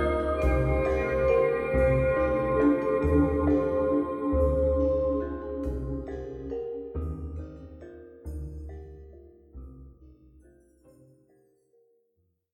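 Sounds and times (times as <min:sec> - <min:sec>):
music: 0:00.0 - 0:12.2.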